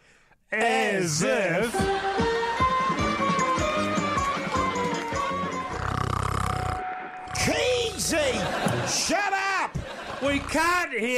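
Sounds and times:
speech: 0.5 - 2.2, 10.2 - 11.1
laughter: 1.6 - 5.6, 7.4 - 10.8
loud snoring: 5.5 - 8.4, 10.1 - 10.8.

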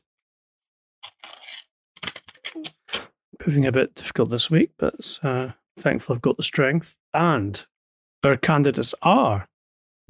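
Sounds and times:
envelope being torn open: 1.0 - 3.1
speech: 2.6 - 2.8, 3.4 - 9.5.

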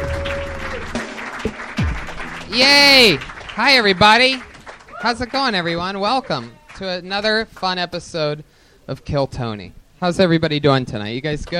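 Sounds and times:
live comedy club audience at the Comedy Store applauding the host: 0.0 - 7.0
speech: 2.5 - 11.5.

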